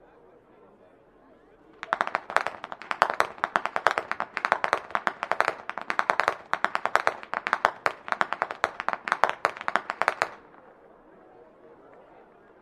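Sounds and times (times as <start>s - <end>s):
youth whip cracking: 1.8s - 10.4s.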